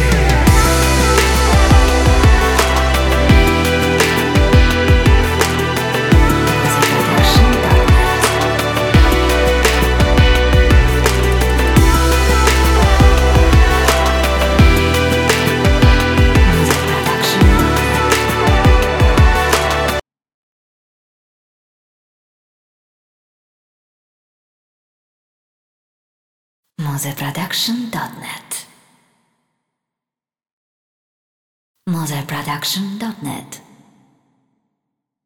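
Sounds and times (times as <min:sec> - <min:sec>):
inspirational emotional electronic trailer music: 0:00.0 - 0:20.0.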